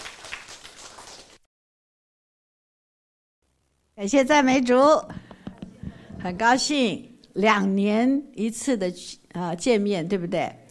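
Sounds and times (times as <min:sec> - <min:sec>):
audience clapping in welcome: 0:00.0 - 0:01.4
speech: 0:04.0 - 0:05.3, 0:06.2 - 0:10.6.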